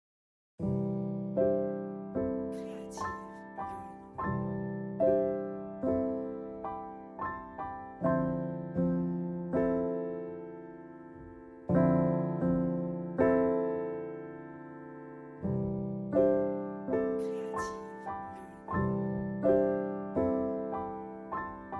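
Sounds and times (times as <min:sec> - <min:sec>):
piano: 0:00.6 - 0:21.7.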